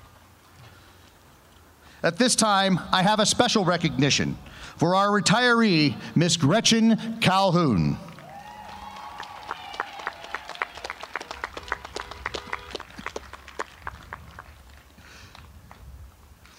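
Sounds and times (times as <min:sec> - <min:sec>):
speech: 0:02.0 - 0:08.1
jogging footsteps of a retiring teacher: 0:11.2 - 0:15.9.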